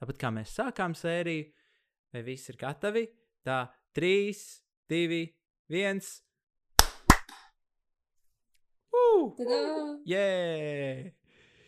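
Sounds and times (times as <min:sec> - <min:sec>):
speech: 0:00.1 - 0:06.2, 0:09.1 - 0:11.2
hands slapping together in a high five: 0:06.8 - 0:07.5.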